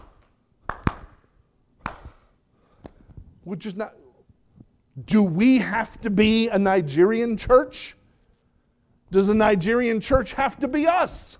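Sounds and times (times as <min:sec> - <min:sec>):
hand claps: 0:00.0 - 0:02.2
speech: 0:03.4 - 0:04.0, 0:05.0 - 0:08.0, 0:09.1 - 0:11.3.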